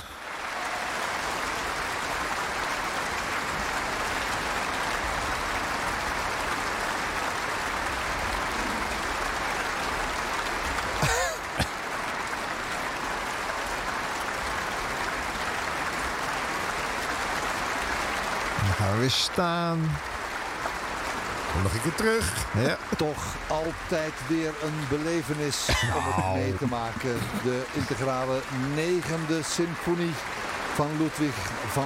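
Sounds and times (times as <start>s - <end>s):
concert hall applause: 0.0s - 31.8s
speech: 19.1s - 20.2s, 21.6s - 31.8s
laughter: 21.6s - 29.8s.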